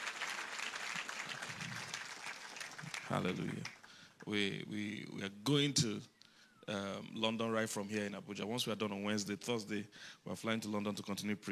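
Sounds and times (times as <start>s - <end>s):
audience clapping: 0.0s - 4.1s
speech: 3.1s - 11.5s.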